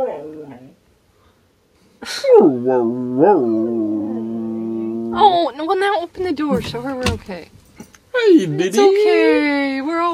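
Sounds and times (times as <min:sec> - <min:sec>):
dog crying and howling behind door: 0:00.0 - 0:00.8, 0:02.2 - 0:05.4
speech: 0:02.0 - 0:03.9, 0:05.2 - 0:07.6, 0:08.2 - 0:10.1.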